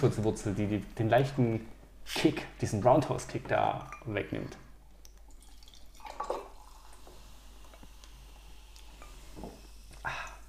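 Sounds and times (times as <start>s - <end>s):
speech: 0.0s - 4.6s
faint drips: 3.3s - 10.4s
tonic water being poured over ice into a glass: 5.2s - 7.9s.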